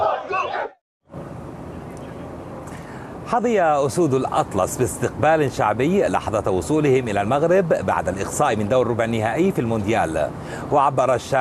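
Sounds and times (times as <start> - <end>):
Spanish football fans celebrating and chanting: 0.0 - 0.8
speech: 3.3 - 11.3.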